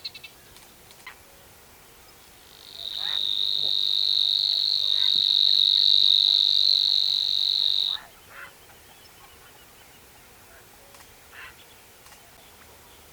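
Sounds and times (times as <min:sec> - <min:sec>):
Savi's warbler reeling song: 0:02.4 - 0:08.6.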